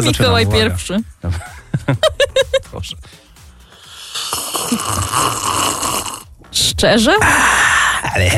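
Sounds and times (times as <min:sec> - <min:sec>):
speech: 0:00.0 - 0:03.2, 0:04.6 - 0:06.0, 0:06.6 - 0:08.3
laughter: 0:01.3 - 0:02.8
loud slurping of tea: 0:03.9 - 0:06.3.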